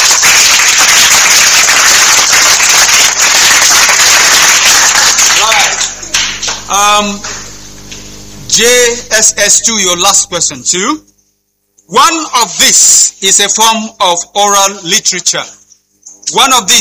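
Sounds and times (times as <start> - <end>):
applause: 0.0 - 7.5
speech: 7.0 - 7.3, 8.6 - 11.1, 11.9 - 15.6, 16.2 - 16.7.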